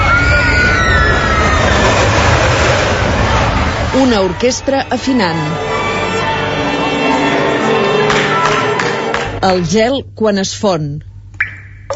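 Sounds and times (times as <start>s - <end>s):
roller coaster cars rumbling on the track: 0.0s - 9.9s
speech: 4.0s - 5.7s, 9.4s - 11.1s.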